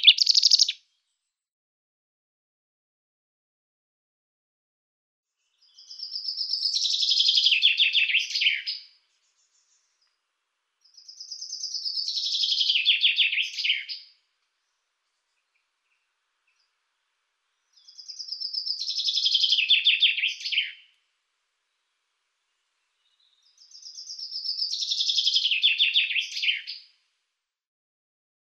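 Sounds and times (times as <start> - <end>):
common chaffinch singing: 0.0 - 0.8, 5.6 - 10.0, 10.9 - 14.1, 17.6 - 20.9, 23.0 - 26.8.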